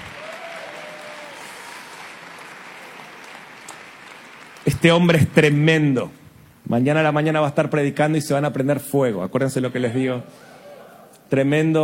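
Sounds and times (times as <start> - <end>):
audience applause: 0.0 - 5.5
speech: 4.6 - 10.5, 11.3 - 11.8.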